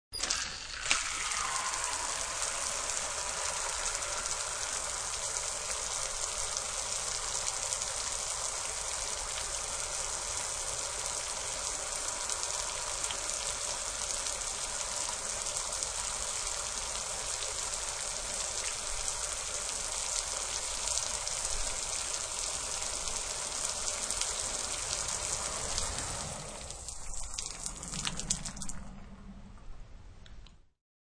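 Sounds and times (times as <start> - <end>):
outside shower running: 0.2 - 29.7.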